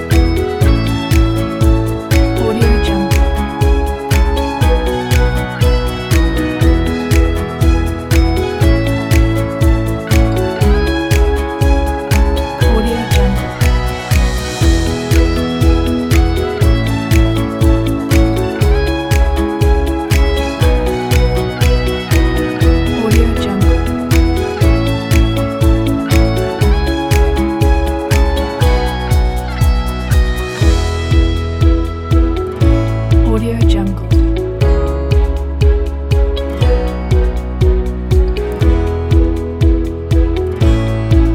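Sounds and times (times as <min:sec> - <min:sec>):
corporate background music: 0:00.0 - 0:41.3.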